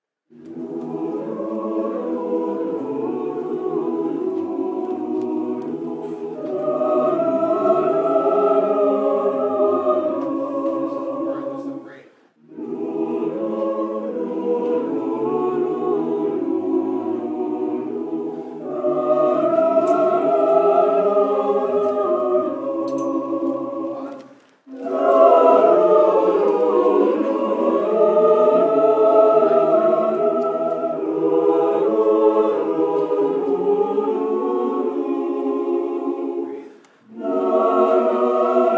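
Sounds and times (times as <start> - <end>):
chorale: 0.0 - 38.7.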